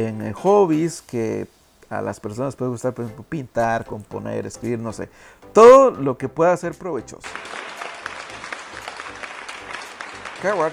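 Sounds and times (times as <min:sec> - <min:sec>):
speech: 0:00.0 - 0:07.8, 0:10.4 - 0:10.7
audience applause: 0:07.2 - 0:10.7.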